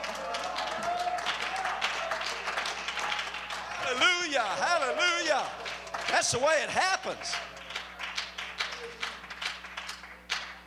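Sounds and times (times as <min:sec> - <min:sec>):
people clapping: 0:00.0 - 0:10.6
speech: 0:04.3 - 0:07.5.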